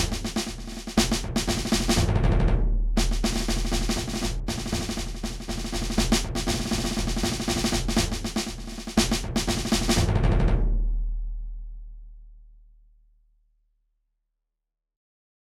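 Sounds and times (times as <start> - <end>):
large drums: 0.0 - 11.6.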